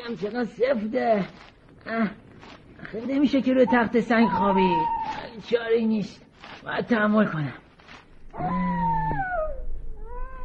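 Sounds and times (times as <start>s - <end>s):
speech: 0.0s - 7.6s, 8.4s - 9.2s
wolf howling: 3.7s - 5.4s, 8.3s - 10.4s.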